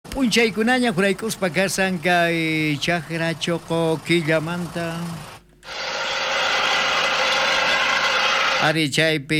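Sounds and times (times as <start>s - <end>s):
tractor diesel engine running: 0.1s - 8.6s
speech: 0.2s - 5.9s, 8.6s - 9.3s.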